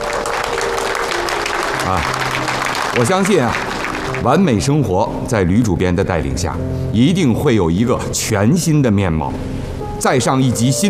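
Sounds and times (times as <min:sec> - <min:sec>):
colleagues clapping at a meeting: 0:00.0 - 0:04.7
speech: 0:01.9 - 0:02.2, 0:03.0 - 0:10.8.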